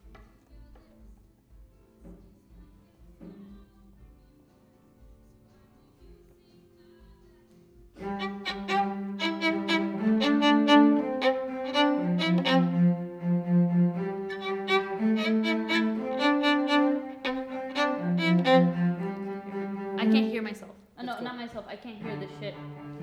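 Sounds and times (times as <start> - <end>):
violin: 8.0 - 23.0.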